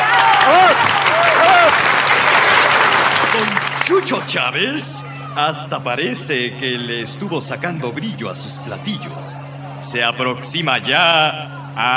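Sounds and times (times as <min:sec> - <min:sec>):
audience applause for a band: 0:00.0 - 0:05.4
speech: 0:03.4 - 0:11.9.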